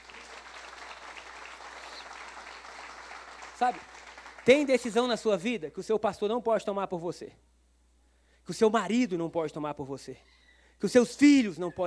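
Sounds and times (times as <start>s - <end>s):
audience applause: 0.0s - 5.0s
speech: 3.6s - 7.4s, 8.5s - 11.8s.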